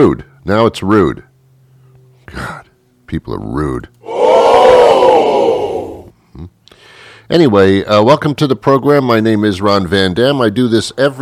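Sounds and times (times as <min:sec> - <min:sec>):
speech: 0:00.0 - 0:01.3, 0:02.3 - 0:04.4, 0:06.4 - 0:06.6, 0:07.3 - 0:11.2
studio audience cheering and roaring: 0:04.0 - 0:06.1.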